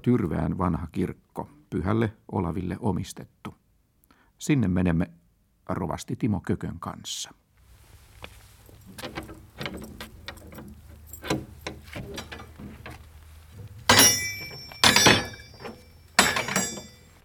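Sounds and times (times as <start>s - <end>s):
speech: 0.0s - 3.6s, 4.4s - 7.4s
heavy church doors from 1829 being opened: 8.6s - 17.2s.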